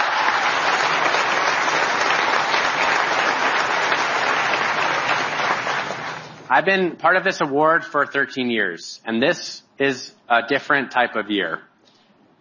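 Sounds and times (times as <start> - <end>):
audience applause: 0.0 - 6.5
speech: 6.5 - 11.7.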